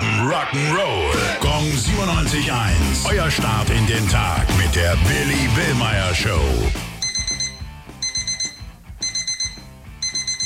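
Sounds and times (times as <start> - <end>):
speech: 0.2 - 6.9
electronic alarm clock ringing in shrill beeps: 7.0 - 10.4.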